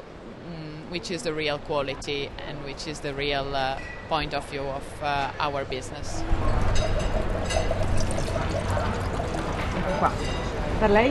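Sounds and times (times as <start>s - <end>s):
speech: 0.9s - 8.2s, 9.9s - 11.0s
wine being poured into glasses: 6.2s - 10.6s.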